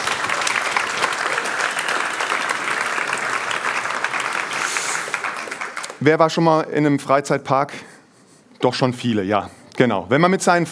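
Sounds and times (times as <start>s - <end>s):
audience applause: 0.0s - 6.0s
speech: 6.0s - 7.9s, 8.6s - 10.6s.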